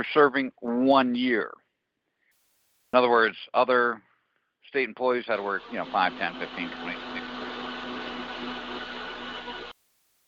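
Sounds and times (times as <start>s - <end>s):
speech: 0.0s - 1.6s, 2.9s - 4.1s, 4.7s - 7.0s
blender running: 5.4s - 9.8s.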